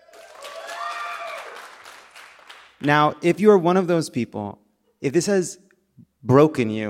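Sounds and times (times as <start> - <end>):
gliding tonal whoop: 0.0 - 1.7
live audience applause: 0.0 - 2.8
speech: 2.8 - 6.8.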